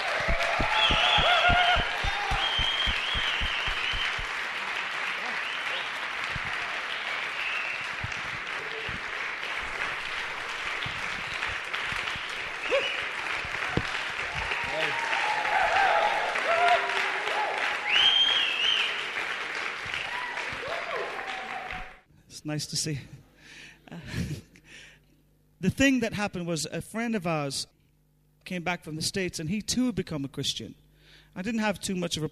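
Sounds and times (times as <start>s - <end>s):
Edinburgh audience applause welcoming a speaker: 0.0s - 22.0s
speech: 22.4s - 23.2s, 25.7s - 27.8s, 28.5s - 30.8s, 31.4s - 32.3s.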